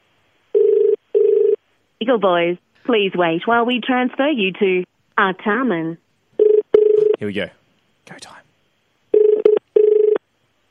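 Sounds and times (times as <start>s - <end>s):
telephone ringing tone: 0.5s - 1.6s, 6.4s - 7.2s, 9.1s - 10.2s
speech: 2.0s - 6.0s, 7.2s - 8.4s.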